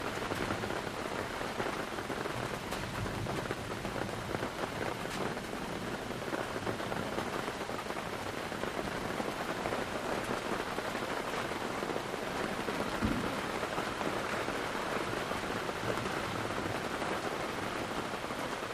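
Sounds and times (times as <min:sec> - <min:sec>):
rain heard inside a tent: 0:00.0 - 0:18.7.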